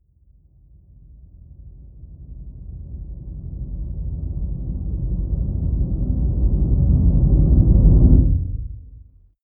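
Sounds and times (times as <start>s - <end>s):
deep noise rumble: 2.8s - 9.3s.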